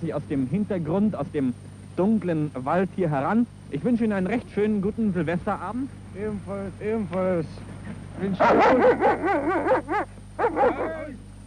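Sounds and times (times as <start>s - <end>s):
speech: 0.0s - 11.2s
low steady hum: 0.0s - 11.4s
border patrol dog barking: 8.4s - 11.1s.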